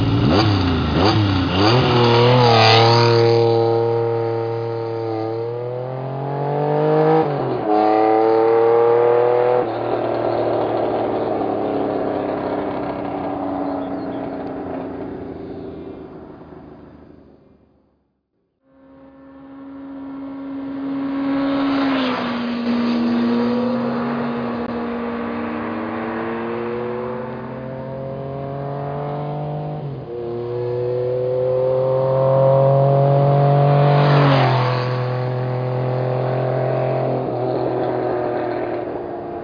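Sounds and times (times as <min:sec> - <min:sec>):
1980 Laverda CR1000 motorcycle: 0:00.0 - 0:39.4.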